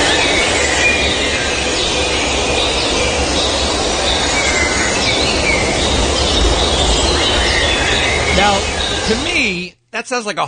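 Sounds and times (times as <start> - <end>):
dense chorus of frogs trilling and croaking in a forest: 0.0 - 9.6
low rumbling bed: 1.7 - 9.7
speech: 8.5 - 9.3, 10.0 - 10.4.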